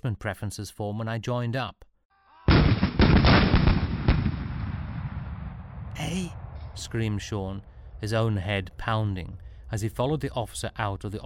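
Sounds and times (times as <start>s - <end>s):
speech: 0.0s - 1.9s, 6.0s - 11.2s
artillery gunfire booming: 2.5s - 6.8s.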